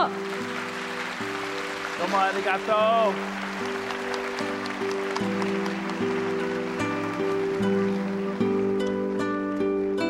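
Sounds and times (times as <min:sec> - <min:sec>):
audience applause: 0:00.0 - 0:09.9
speech: 0:02.0 - 0:03.8.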